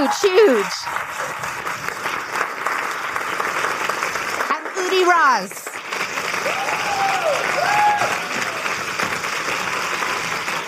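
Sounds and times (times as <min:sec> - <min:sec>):
speech: 0:00.0 - 0:01.8, 0:04.8 - 0:05.6
crowd applauding: 0:00.0 - 0:10.6.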